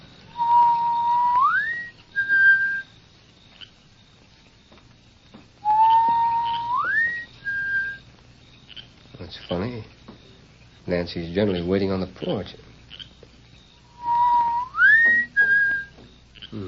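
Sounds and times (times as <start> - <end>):
person whistling as a signal: 0.4 - 2.8, 5.6 - 8.0, 14.0 - 16.0
speech: 11.0 - 12.7.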